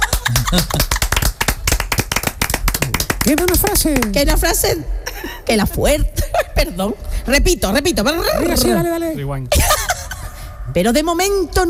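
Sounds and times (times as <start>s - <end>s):
laughter: 0.0s - 1.1s, 8.3s - 10.4s
applause: 0.0s - 4.2s
speech: 0.5s - 1.0s, 3.2s - 9.7s, 10.7s - 11.6s.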